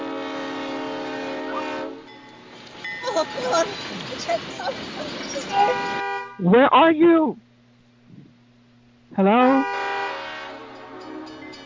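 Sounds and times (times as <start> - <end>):
train horn: 0.0 - 2.2, 5.5 - 6.4, 9.4 - 11.6
speech: 3.2 - 7.4, 9.2 - 9.8.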